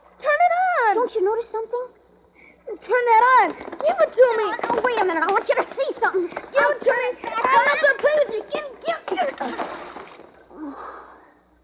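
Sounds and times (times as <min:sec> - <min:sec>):
speech: 0:01.2 - 0:02.0, 0:02.7 - 0:09.8
object dropped into water, splash: 0:09.4 - 0:10.4.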